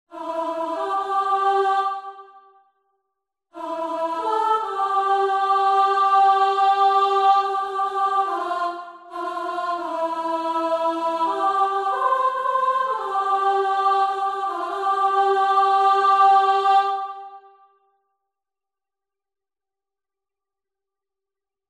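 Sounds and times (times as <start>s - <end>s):
soprano singing: 0.1s - 2.4s, 3.6s - 17.4s.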